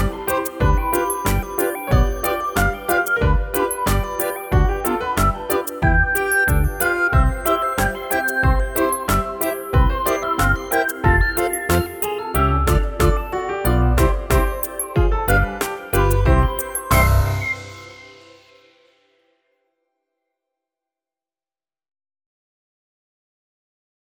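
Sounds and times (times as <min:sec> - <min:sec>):
polka music: 0:00.0 - 0:18.2.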